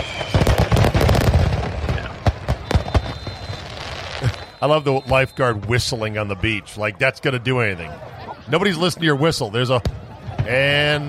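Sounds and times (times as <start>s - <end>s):
fireworks show exploding: 0.0s - 6.6s
speech: 4.6s - 11.0s.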